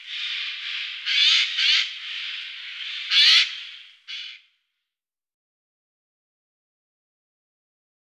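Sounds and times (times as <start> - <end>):
Eurasian jay calling: 0.0 - 4.5.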